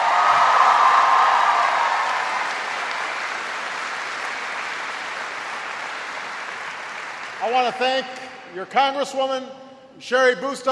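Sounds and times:
audience applause: 0.0s - 7.8s
speech: 7.5s - 10.7s.

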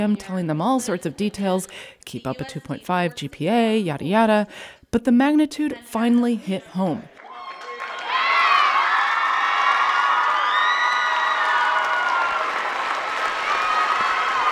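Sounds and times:
speech: 0.0s - 7.1s
students cheering in auditorium: 7.0s - 14.5s
students applauding in auditorium: 7.1s - 14.5s
shouts and whoops: 7.2s - 14.5s.

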